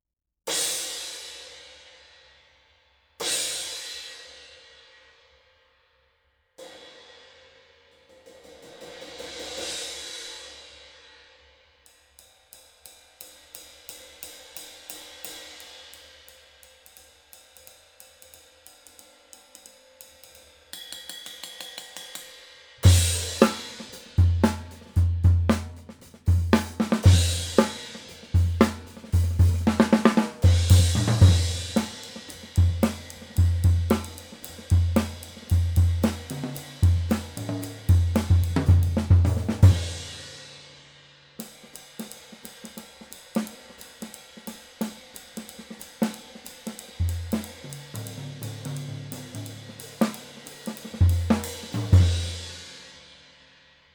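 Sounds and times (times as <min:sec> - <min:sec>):
18 Agop Signature cymbal: 0:00.5 - 0:05.6, 0:06.6 - 0:53.9.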